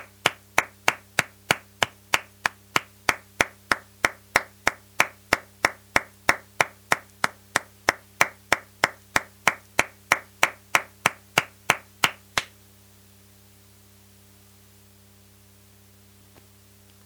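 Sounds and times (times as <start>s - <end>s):
rhythmic clapping: 0.0s - 12.5s.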